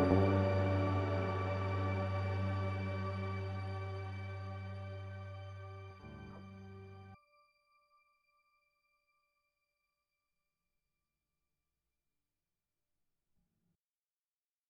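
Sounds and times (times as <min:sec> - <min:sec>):
Eventide H9 dark synth pad: 0:00.0 - 0:07.2.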